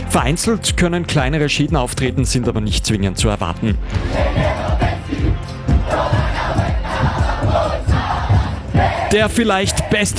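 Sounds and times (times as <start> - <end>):
speech: 0.2 - 4.8, 8.8 - 10.1
large crowd of football fans roaring and chanting in a stadium: 3.9 - 10.1.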